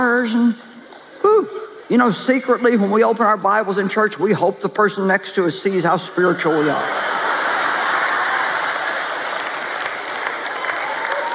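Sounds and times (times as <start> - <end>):
speech: 0.0 - 0.7, 1.4 - 7.2
laughter: 6.2 - 9.9
audience clapping: 7.0 - 11.3.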